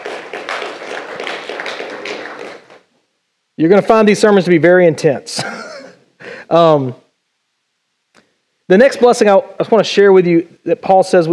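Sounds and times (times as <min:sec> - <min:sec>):
audience clapping: 0:00.0 - 0:02.9
speech: 0:03.6 - 0:05.6, 0:06.5 - 0:07.0, 0:08.7 - 0:11.3.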